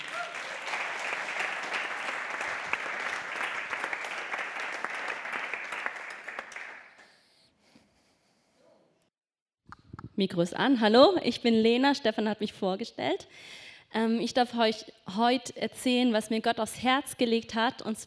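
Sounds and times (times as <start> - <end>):
audience applause: 0.0 - 7.1
speech: 10.2 - 18.0.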